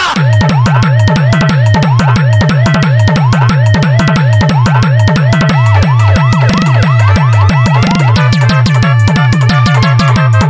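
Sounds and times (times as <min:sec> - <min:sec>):
humming bass: 0:00.2 - 0:10.4
ambulance horn: 0:05.5 - 0:10.4.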